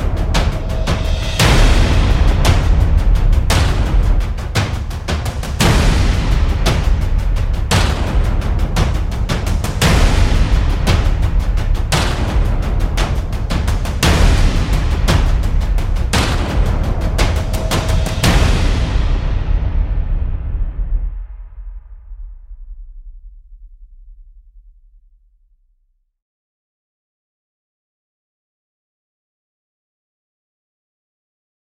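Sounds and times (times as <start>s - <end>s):
drum effects: 0.0s - 23.5s.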